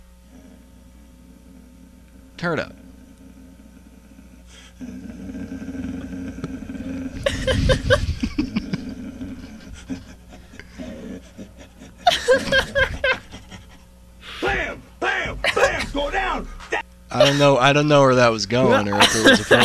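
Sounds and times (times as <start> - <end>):
speech: 2.4 - 2.8, 17.2 - 19.6
laughter: 7.0 - 13.8, 14.4 - 17.6, 18.5 - 19.6
man imitating dog growling, panting and barking: 14.4 - 17.3.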